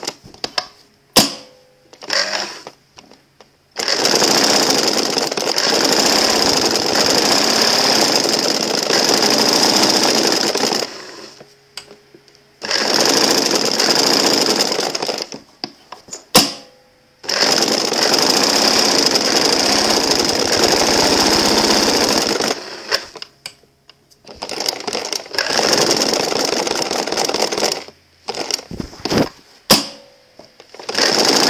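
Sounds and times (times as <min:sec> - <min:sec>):
sewing machine: 0:02.0 - 0:02.8, 0:03.8 - 0:11.4, 0:12.6 - 0:15.4, 0:17.2 - 0:23.3, 0:24.2 - 0:30.0, 0:30.7 - 0:31.4.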